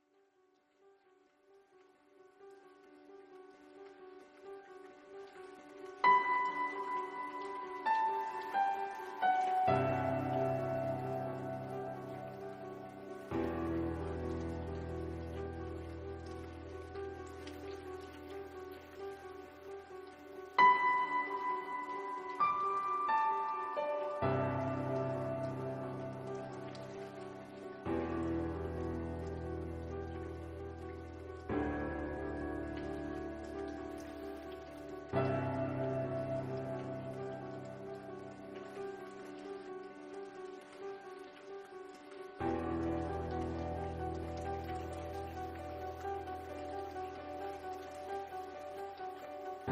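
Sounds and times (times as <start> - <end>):
ambient music: 0.8 - 49.7.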